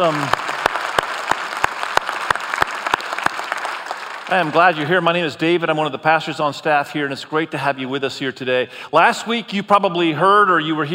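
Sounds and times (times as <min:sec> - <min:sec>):
speech: 0:00.0 - 0:00.4, 0:04.3 - 0:10.9
audience applause: 0:00.0 - 0:04.9.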